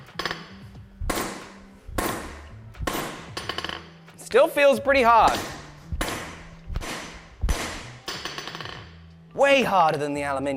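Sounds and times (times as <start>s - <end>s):
hand hammer striking magnesium alloy block: 1.0s - 3.9s, 5.2s - 8.7s
speech: 4.3s - 5.6s, 9.4s - 10.5s.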